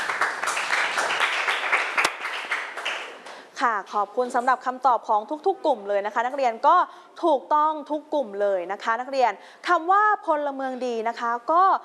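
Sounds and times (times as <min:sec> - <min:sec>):
classroom applause: 0:00.0 - 0:03.4
speech: 0:03.6 - 0:11.8.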